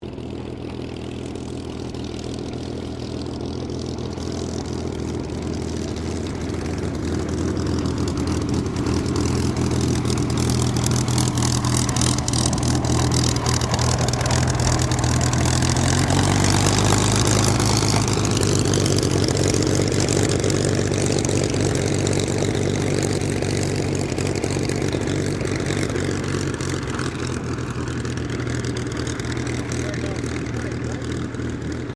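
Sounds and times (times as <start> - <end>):
Supermarine Spitfire Mk XVI taxiing: 0.0 - 31.9.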